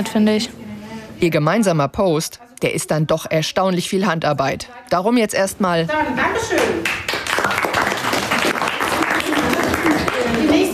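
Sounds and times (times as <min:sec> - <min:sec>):
speech: 0:00.0 - 0:00.6, 0:01.2 - 0:07.1
applause: 0:06.6 - 0:10.7.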